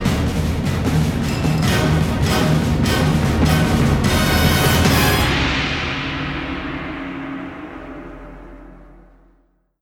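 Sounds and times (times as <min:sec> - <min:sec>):
music sting: 0:00.0 - 0:09.2.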